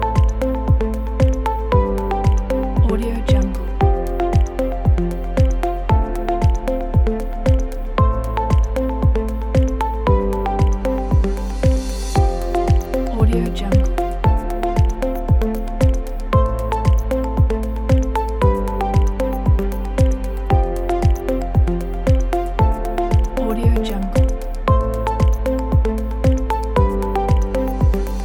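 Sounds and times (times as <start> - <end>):
corporate science technology documentary music: 0.0 - 28.2.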